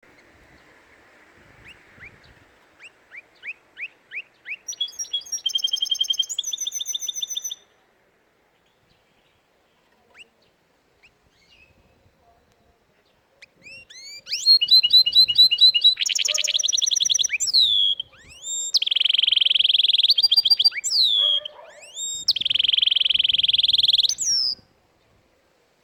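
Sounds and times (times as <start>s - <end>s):
canary singing: 1.6s - 7.7s, 13.4s - 24.7s.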